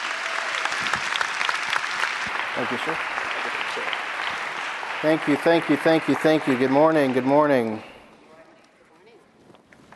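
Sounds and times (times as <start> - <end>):
round of applause: 0.0 - 7.8
speech: 2.6 - 3.1, 3.7 - 4.0, 5.0 - 7.9.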